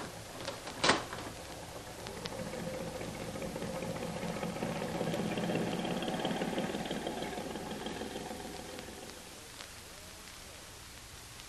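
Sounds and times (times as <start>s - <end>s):
big boat engine droning heading out to sea: 1.2s - 9.5s.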